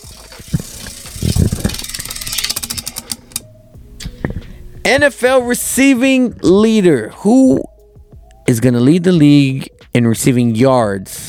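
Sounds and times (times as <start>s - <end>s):
prize wheel spinning: 0.0s - 3.4s
speech: 4.9s - 7.7s, 8.5s - 11.2s.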